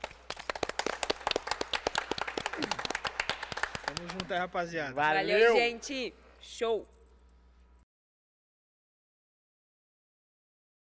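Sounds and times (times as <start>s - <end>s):
round of applause from a group: 0.0s - 4.4s
speech: 2.6s - 2.8s, 3.9s - 7.0s.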